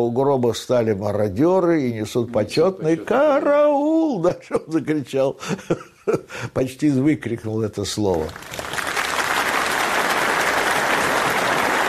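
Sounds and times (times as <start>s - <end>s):
speech: 0.0s - 8.8s
restrained applause from a hall audience: 8.3s - 11.8s.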